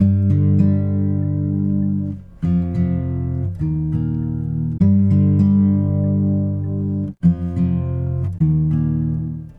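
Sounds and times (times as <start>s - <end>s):
guitar: 0.0s - 9.5s.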